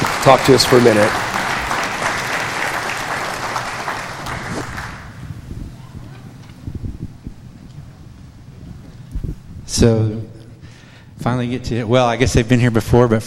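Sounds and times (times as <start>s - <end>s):
crowd applauding: 0.0s - 5.3s
speech: 0.2s - 1.3s, 9.8s - 10.2s, 11.2s - 13.2s.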